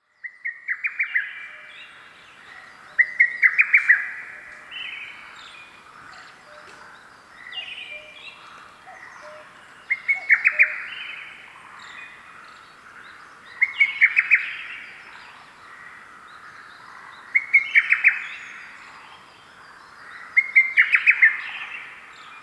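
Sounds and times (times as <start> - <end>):
bird: 0.0 - 22.4.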